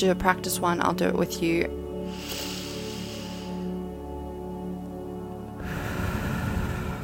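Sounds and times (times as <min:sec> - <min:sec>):
speech: 0:00.0 - 0:02.3
quiet musical drone: 0:00.0 - 0:07.0
slow deep inhalation through the nose during a guided meditation: 0:02.0 - 0:03.9, 0:05.5 - 0:07.0.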